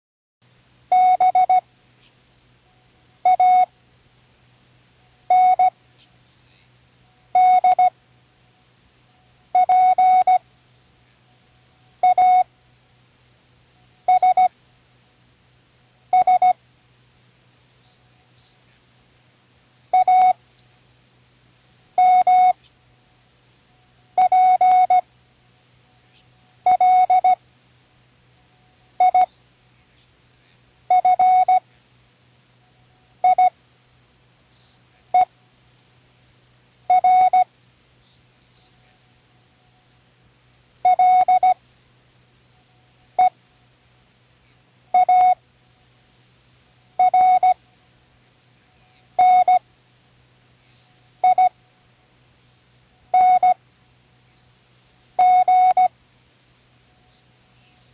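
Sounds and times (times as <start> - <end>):
Morse code spelling words: 0.9 - 1.6, 3.3 - 3.7, 5.3 - 5.7, 7.4 - 7.9, 9.6 - 10.4, 12.0 - 12.5, 14.1 - 14.5, 16.1 - 16.6, 20.0 - 20.4, 22.0 - 22.6, 24.2 - 25.0, 26.7 - 27.4, 29.0 - 29.3, 30.9 - 31.6, 33.2 - 33.5, 36.9 - 37.5, 40.8 - 41.6, 45.0 - 45.4, 47.0 - 47.6, 49.2 - 49.6, 51.2 - 51.5, 53.1 - 53.6, 55.2 - 55.9.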